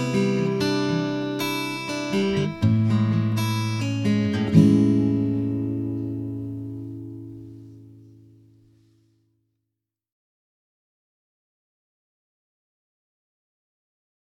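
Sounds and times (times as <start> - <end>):
acoustic guitar: 0.0 - 9.3.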